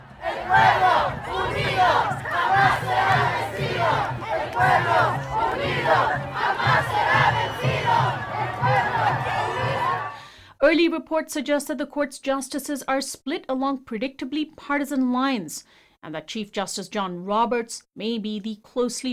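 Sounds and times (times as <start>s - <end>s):
large crowd cheering and shouting outside a courthouse: 0.0s - 10.2s
speech: 10.7s - 19.1s.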